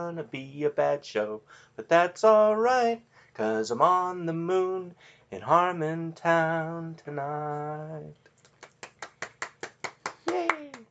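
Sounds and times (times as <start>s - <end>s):
speech: 0.0s - 8.3s
audience clapping: 8.6s - 10.9s
person cheering: 10.2s - 10.9s.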